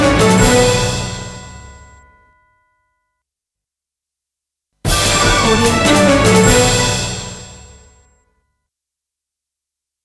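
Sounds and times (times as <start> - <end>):
orchestral news special edition theme: 0.0 - 1.4, 4.9 - 7.9.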